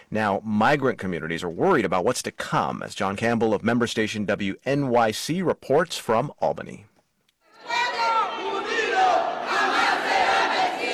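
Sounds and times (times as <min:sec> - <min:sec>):
speech: 0:00.1 - 0:06.9
immigrants rallying inside state capitol, shouting and chanting: 0:07.5 - 0:10.9.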